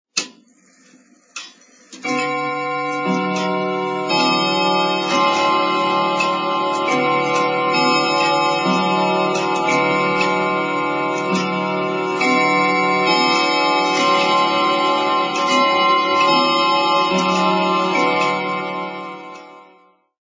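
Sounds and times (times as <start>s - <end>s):
wall clock chiming: 0.2s - 20.1s.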